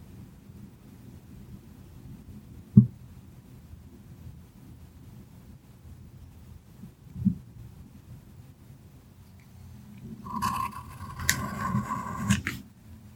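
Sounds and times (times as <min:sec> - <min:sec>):
soft pencil tracing: 0:10.2 - 0:12.6.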